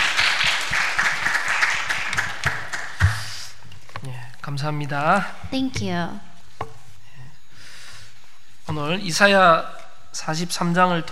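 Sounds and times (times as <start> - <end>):
audience applause: 0.0 - 3.3
speech: 4.5 - 6.3, 8.7 - 11.1.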